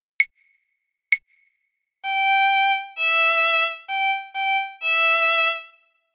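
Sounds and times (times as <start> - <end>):
violin: 2.0 - 5.9.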